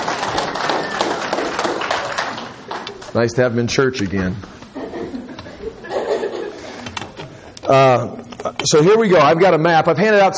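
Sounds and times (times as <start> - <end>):
church audience applause: 0.0 - 3.1
speech: 3.1 - 4.5, 7.7 - 10.3
laughter: 4.6 - 8.6.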